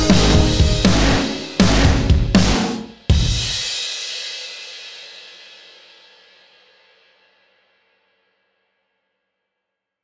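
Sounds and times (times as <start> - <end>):
EMISYNTH synthesizer sound: 0.0 - 2.5.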